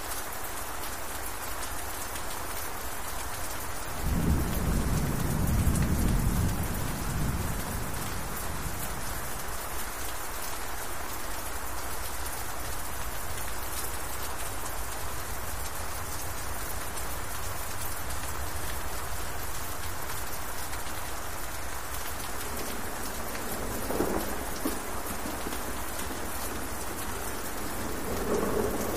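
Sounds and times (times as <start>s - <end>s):
rain on a castle: 0.0s - 28.9s
rumble of thunder: 4.0s - 9.6s, 22.1s - 28.9s.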